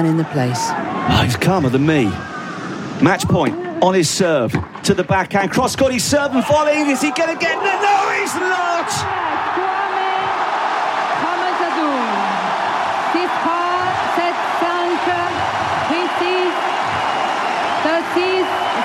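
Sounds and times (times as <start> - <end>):
speech: 0.0 - 2.3, 3.0 - 9.7
people shouting and whooping: 6.3 - 18.8
tennis crowd cheering and applauding: 6.4 - 18.8.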